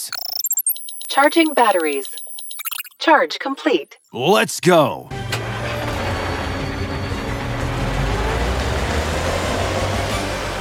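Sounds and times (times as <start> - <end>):
speech: 1.2 - 2.2, 3.0 - 5.2
car engine rumbling while driving: 5.1 - 10.5
road noise: 5.1 - 10.5.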